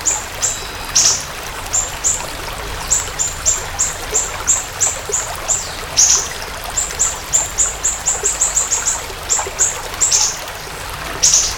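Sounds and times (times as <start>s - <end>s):
siri-siri bird song: 0.0s - 11.5s.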